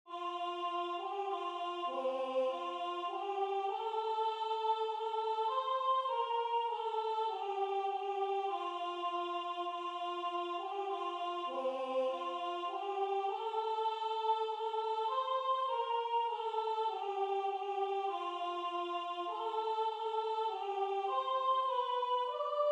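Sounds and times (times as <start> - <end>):
soprano singing: 0.1 - 22.6.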